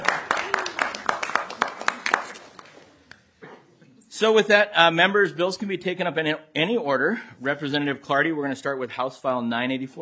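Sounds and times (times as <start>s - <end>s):
group applause: 0.0s - 2.9s
speech: 4.2s - 10.0s.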